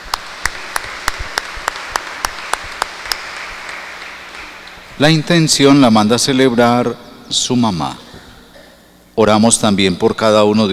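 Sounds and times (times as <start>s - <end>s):
applause: 0.0s - 5.0s
speech: 5.0s - 8.0s, 9.2s - 10.7s.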